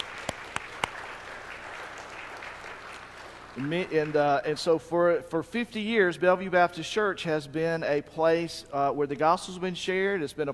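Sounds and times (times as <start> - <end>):
audience applause: 0.0 - 4.1
speech: 3.6 - 10.5.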